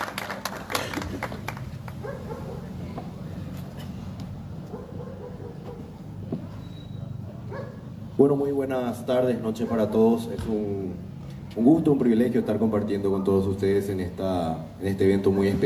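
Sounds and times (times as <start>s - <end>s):
audience applause: 0.0s - 2.0s
speech: 8.2s - 15.6s.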